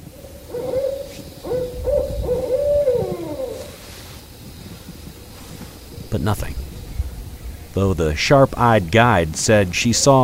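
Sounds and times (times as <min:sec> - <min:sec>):
recorded owl hoots from a digital owl caller: 0:00.0 - 0:07.2
low rumbling background: 0:01.6 - 0:10.2
speech: 0:06.2 - 0:06.6, 0:07.8 - 0:10.2.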